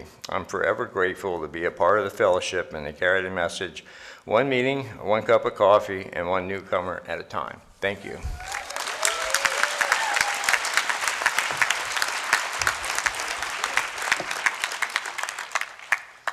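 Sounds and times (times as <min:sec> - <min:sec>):
speech: 0:00.0 - 0:08.6
audience applause: 0:08.4 - 0:16.3.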